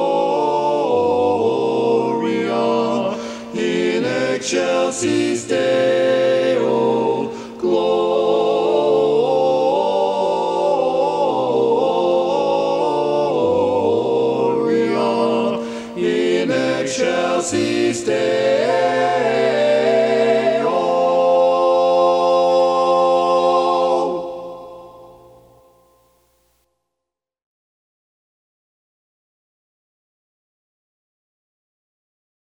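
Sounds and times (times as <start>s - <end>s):
baritone singing a carol: 0.0s - 24.8s.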